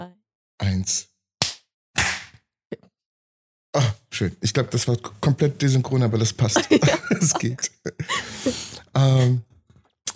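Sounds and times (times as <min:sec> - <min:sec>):
speech: 0:00.8 - 0:01.1, 0:03.7 - 0:09.5
single hand clap for audio sync: 0:01.4 - 0:02.4
laughter: 0:06.5 - 0:09.4.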